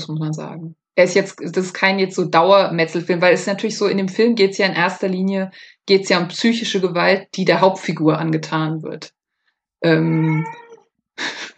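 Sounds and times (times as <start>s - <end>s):
speech: 0.0s - 9.2s, 9.8s - 10.6s, 11.2s - 11.5s
cat meowing: 10.0s - 10.8s.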